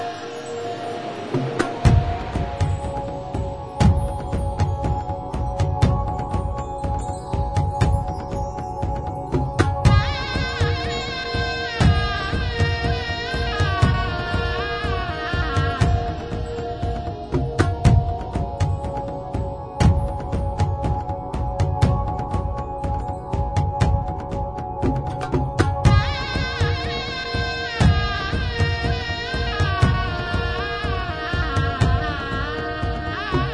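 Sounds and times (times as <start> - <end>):
tantra drums: 0.2 - 33.5.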